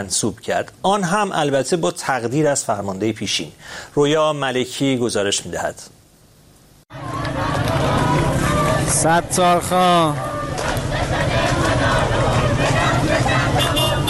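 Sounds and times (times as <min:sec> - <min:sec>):
speech: 0:00.0 - 0:06.0, 0:09.0 - 0:10.3
crowd of Sistan and Baluchestan supporters chanting: 0:06.9 - 0:14.0.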